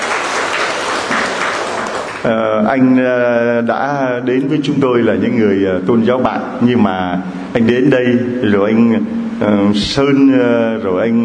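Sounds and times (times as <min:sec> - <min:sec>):
church congregation clapping to welcome a newcomer: 0:00.0 - 0:02.9
speech: 0:02.2 - 0:11.2.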